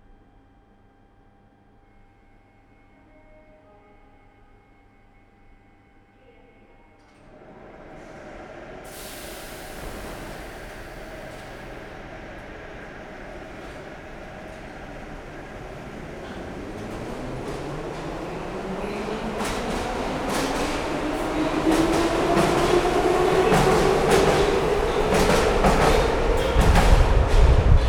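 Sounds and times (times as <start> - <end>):
metro train arriving from the right: 6.0 - 27.8.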